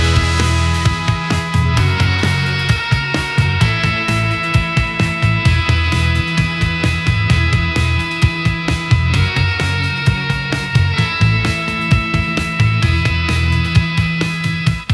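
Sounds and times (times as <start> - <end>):
anthemic rock music: 0.0 - 14.9.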